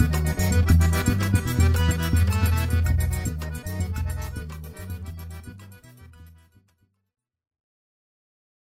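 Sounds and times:
musical trio: 0.0 - 6.0.

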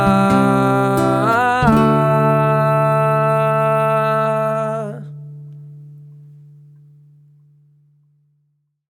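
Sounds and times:
person's voice: 0.0 - 5.2
acoustic guitar: 0.0 - 8.5.

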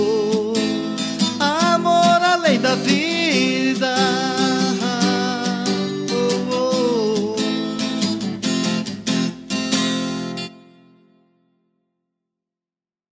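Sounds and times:
voice: 0.0 - 8.4
acoustic guitar: 0.0 - 11.9.

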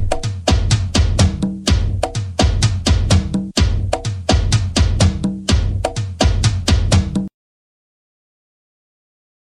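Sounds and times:
funk music: 0.0 - 7.3.

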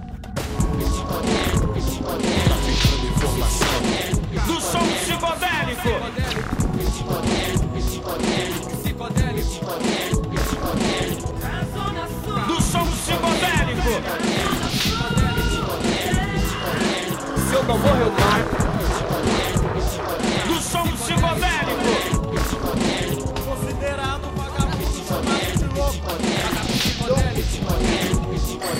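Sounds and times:
rap intro: 0.4 - 28.7.

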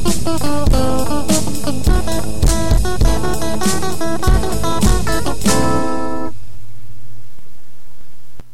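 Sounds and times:
bass: 0.0 - 6.3.

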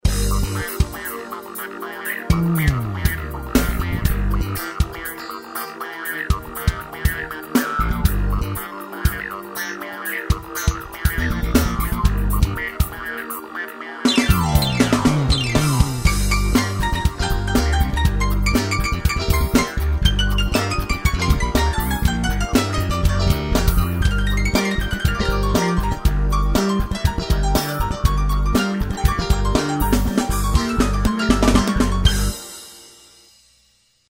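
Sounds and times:
piano: 0.0 - 33.0.

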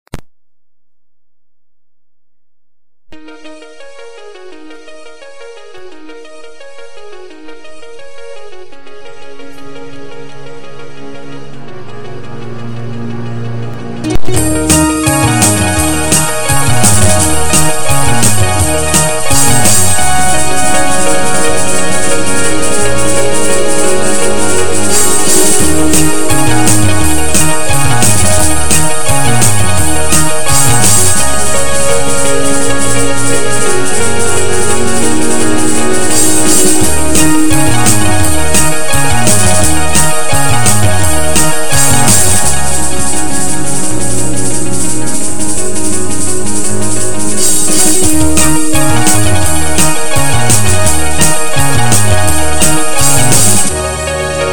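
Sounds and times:
Chinese rock music: 12.2 - 54.5.

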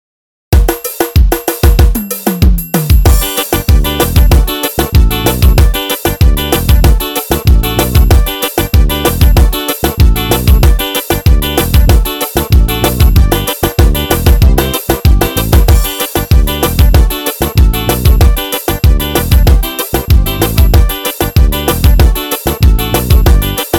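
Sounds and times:
forró vanera music: 0.6 - 23.7.

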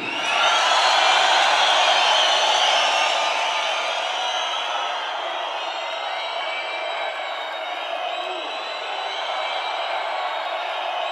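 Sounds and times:
audience applause: 0.0 - 11.1.

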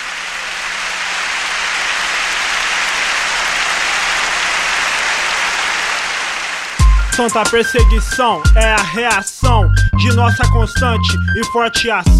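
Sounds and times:
audience clapping loudly: 0.0 - 7.8
speech: 7.2 - 12.1.

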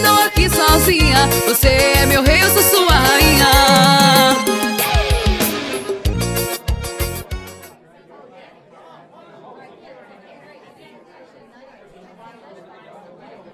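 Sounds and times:
forro xote music: 0.0 - 7.7.

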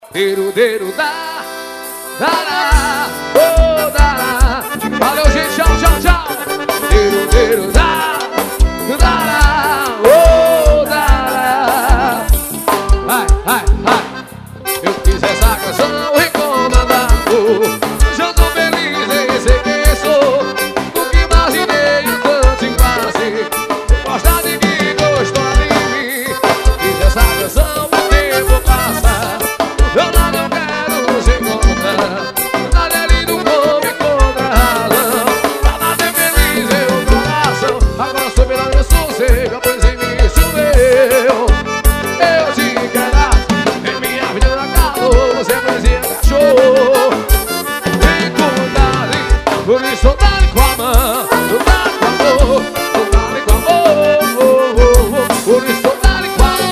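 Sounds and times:
forró music: 0.0 - 56.7.

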